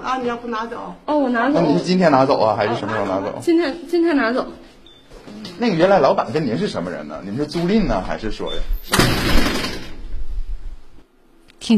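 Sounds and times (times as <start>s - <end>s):
speech: 0.1s - 9.7s, 11.6s - 11.7s
office door banging shut: 8.8s - 10.2s.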